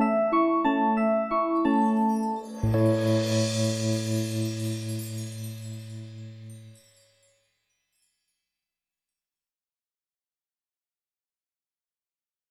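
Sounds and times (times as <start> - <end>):
piano sonata in D: 0.0 - 6.8.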